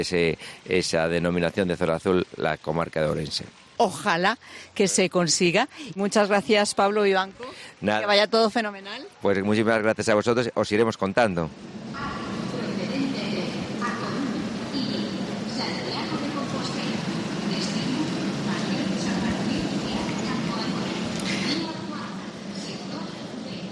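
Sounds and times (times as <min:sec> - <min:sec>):
speech: 0:00.0 - 0:12.1
train arriving at the Renfe station in Orense: 0:11.1 - 0:23.7.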